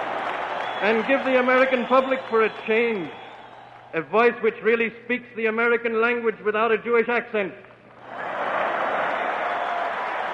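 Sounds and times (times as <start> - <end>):
crowd of 19,000 cheering at a 1939 German-American Bund rally in Madison Square Garden: 0.0 - 3.9, 8.0 - 10.3
speech: 0.8 - 3.2, 3.9 - 7.7.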